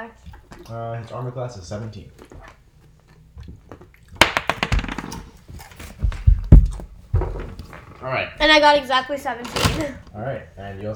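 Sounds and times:
speech: 0.0 - 2.6, 8.0 - 10.9
dice rolling on a table: 4.2 - 6.6.

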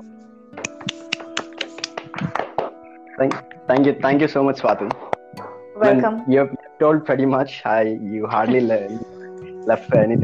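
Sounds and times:
light applause: 0.6 - 2.7
speech: 3.2 - 5.1, 5.8 - 10.2.

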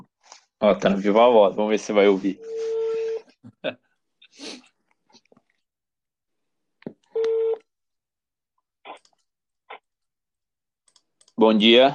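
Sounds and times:
speech: 0.6 - 2.7, 11.4 - 11.9
telephone busy tone after call hung up: 7.2 - 7.6.

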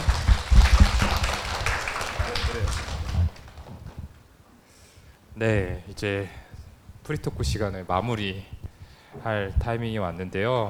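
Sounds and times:
audience applause: 0.0 - 3.7
speech: 5.4 - 6.4, 7.1 - 8.6, 9.2 - 10.6.

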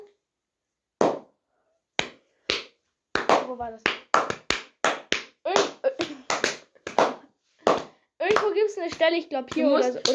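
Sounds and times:
loud hand clap: 1.0 - 1.3, 2.0 - 10.1
speech: 3.5 - 4.4, 8.4 - 10.1.

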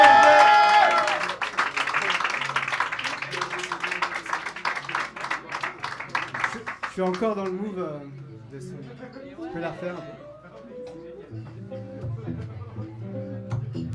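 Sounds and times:
cheers and whoops: 0.0 - 1.4
audience applauding: 0.0 - 7.6
speech: 7.0 - 10.2.

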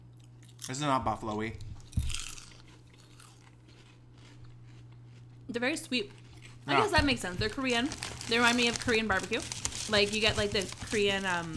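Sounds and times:
speech: 0.6 - 1.7, 5.5 - 11.5
crunching on barbecue-flavoured Bugles corn snacks: 1.9 - 5.2, 6.3 - 11.5.

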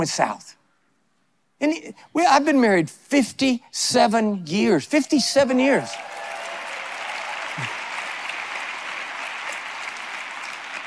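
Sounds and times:
speech: 0.0 - 0.6, 1.6 - 6.2
audience applause: 5.4 - 10.8.

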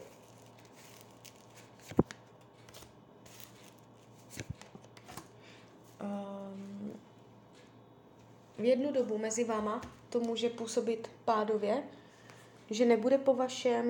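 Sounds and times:
cards drawn from a deck: 0.0 - 5.3
speech: 8.6 - 12.0, 12.7 - 13.8.

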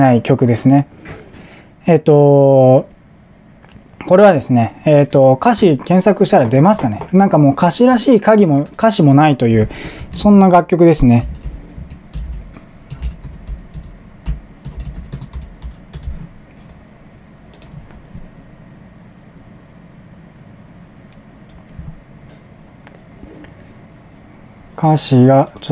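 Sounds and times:
speech: 0.0 - 1.2, 1.8 - 2.9, 4.0 - 11.5, 24.8 - 25.6
low steady hum: 0.0 - 25.6
computer keyboard typing: 9.8 - 10.4, 11.1 - 16.8, 17.5 - 18.0.

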